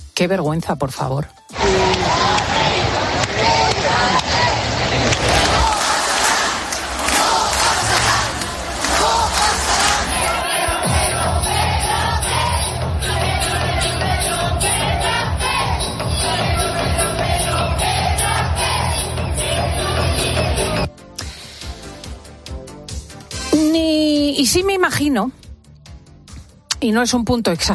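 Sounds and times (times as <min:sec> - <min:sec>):
speech: 0:00.2 - 0:02.5, 0:24.5 - 0:25.4, 0:26.8 - 0:27.7
large crowd chanting a name: 0:01.6 - 0:20.8.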